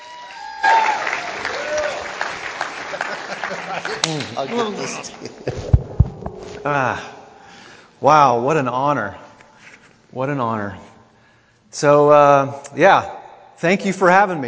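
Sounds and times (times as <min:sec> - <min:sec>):
voices whooping: 0:00.0 - 0:02.3
polite golf-clap applause from an audience welcoming a guest: 0:00.0 - 0:04.8
laughter: 0:02.5 - 0:05.8
speech: 0:03.7 - 0:05.7, 0:06.6 - 0:07.2, 0:08.0 - 0:09.2, 0:10.1 - 0:10.9, 0:11.7 - 0:14.4.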